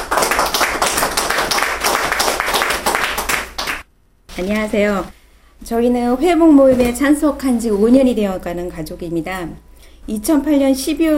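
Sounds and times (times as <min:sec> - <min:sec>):
audience clapping in welcome: 0:00.0 - 0:03.9
speech: 0:04.4 - 0:11.1.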